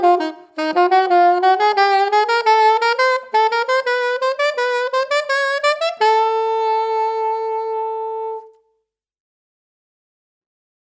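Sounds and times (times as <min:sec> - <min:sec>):
modern Yanagisawa A-WO1 saxophone solo: 0:00.0 - 0:08.7.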